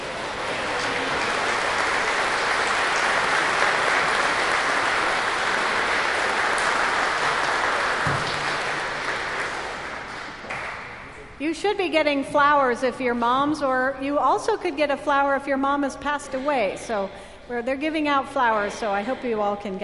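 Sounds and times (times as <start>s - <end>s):
large crowd applause for mothers: 0.0s - 11.2s
speech: 11.6s - 19.8s.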